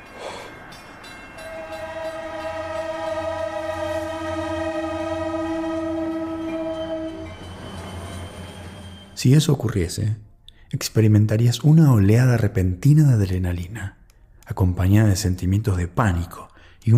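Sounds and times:
approaching locomotive rumble: 0.0s - 9.2s
locomotive horn blast: 1.4s - 9.2s
speech: 9.2s - 16.9s.

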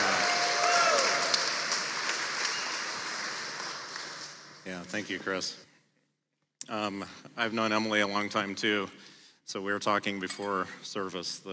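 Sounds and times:
audience applause: 0.0s - 4.6s
speech: 4.7s - 5.7s, 6.7s - 11.5s.

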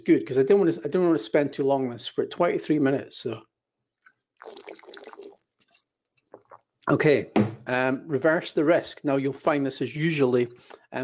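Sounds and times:
speech: 0.0s - 3.5s, 4.4s - 4.9s, 6.9s - 11.0s
person drinking water: 3.9s - 7.0s.

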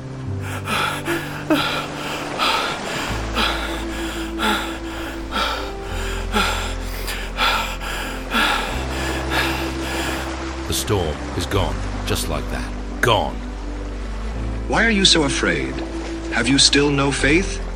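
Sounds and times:
ragged breathing of frightened men: 0.4s - 10.5s
speech: 1.5s - 1.9s, 10.9s - 13.5s, 14.7s - 17.6s.

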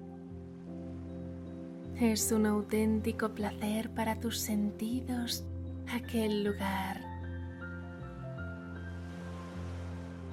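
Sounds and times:
ocean waves on the shore: 0.0s - 4.3s, 7.5s - 10.3s
soft sustained musical tones: 0.0s - 10.3s
speech: 2.0s - 7.1s.

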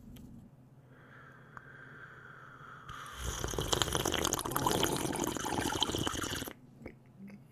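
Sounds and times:
noisy slurping sip of coffee: 2.9s - 6.5s.

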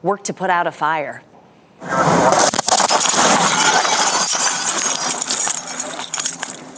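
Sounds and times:
speech: 0.0s - 2.6s
home in New Jersey exploding: 1.8s - 6.6s.

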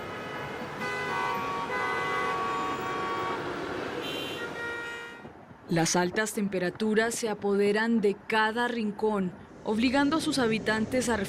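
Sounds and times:
several overlapping car horns honking: 0.0s - 5.4s
busy chaotic street traffic engines roaring: 0.0s - 11.2s
speech: 5.7s - 11.2s.

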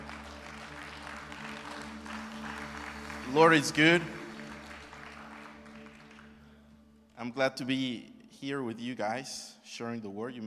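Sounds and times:
church congregation applauding: 0.0s - 7.2s
speech: 3.3s - 4.2s, 7.2s - 10.4s.

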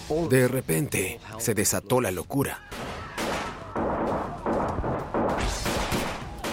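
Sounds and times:
speech: 0.1s - 2.7s
gunfire: 2.7s - 6.5s.

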